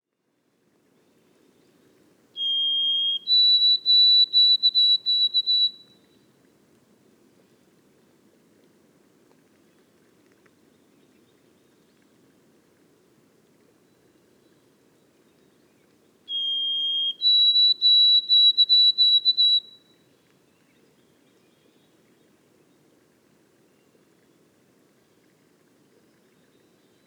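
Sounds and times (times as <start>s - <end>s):
White-throated sparrow whistled song in boreal forest: 2.4s - 6.0s, 16.3s - 19.9s.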